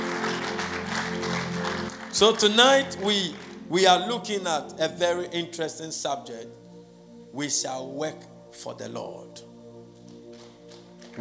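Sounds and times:
crowd clapping: 0.0 - 3.8, 10.1 - 11.2
speech: 2.2 - 6.6, 7.3 - 9.5.

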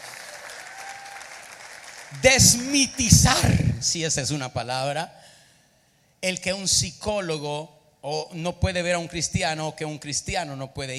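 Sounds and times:
audience applause: 0.0 - 3.4
speech: 2.1 - 5.3, 6.2 - 10.9.

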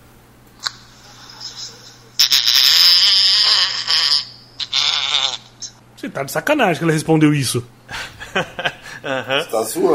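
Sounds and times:
loud raspy fart sound in a voice message: 2.2 - 5.7
speech: 6.0 - 9.9
laughter: 7.9 - 9.6.

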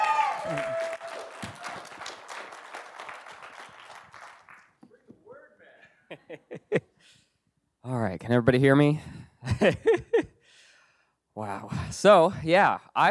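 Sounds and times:
church audience clapping welcoming a speaker to the stage: 0.0 - 5.1
laughter: 5.6 - 7.0, 9.4 - 10.3
speech: 7.9 - 10.1, 11.4 - 13.0.

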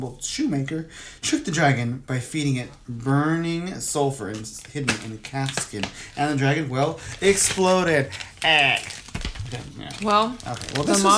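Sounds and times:
speech: 0.0 - 11.1
potato snack bag crinkling: 4.3 - 11.1
voice sounds: 8.4 - 11.1.

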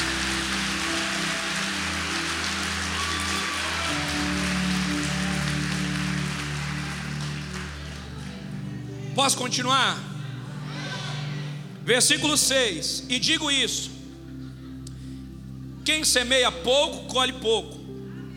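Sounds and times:
audience clapping hands: 0.0 - 8.7
speech: 9.2 - 10.1, 11.9 - 14.0, 15.9 - 17.8.

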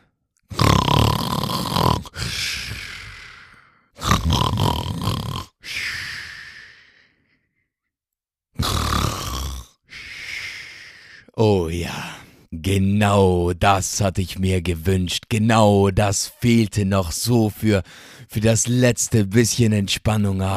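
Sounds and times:
loud rough snoring of a person lying nearby: 0.5 - 3.1, 4.0 - 5.6, 8.6 - 9.9
speech: 11.4 - 20.5.

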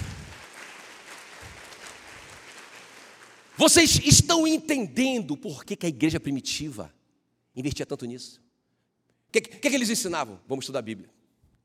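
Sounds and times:
audience applause: 0.0 - 3.9
speech: 3.6 - 7.0, 7.6 - 8.4, 9.3 - 11.2.

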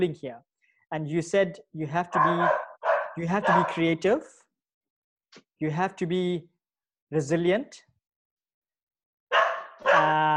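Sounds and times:
speech: 0.0 - 4.4, 5.3 - 6.5, 7.1 - 7.9, 10.0 - 10.3
dog barking: 2.1 - 3.9, 9.3 - 10.2.

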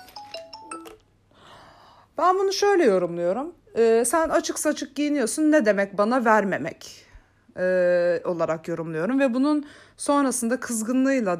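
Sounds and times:
mobile phone ringing: 0.0 - 1.1
speech: 2.2 - 7.0, 7.6 - 11.3.

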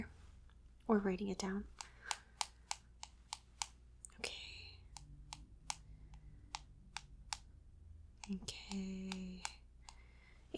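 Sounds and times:
speech: 0.9 - 1.9
fingers tapping patient details into a phone: 1.7 - 3.8, 4.8 - 7.5, 8.2 - 10.0.

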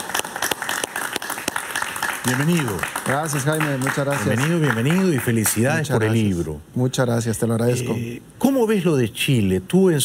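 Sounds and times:
audience applause: 0.0 - 5.6
speech: 2.2 - 10.0.

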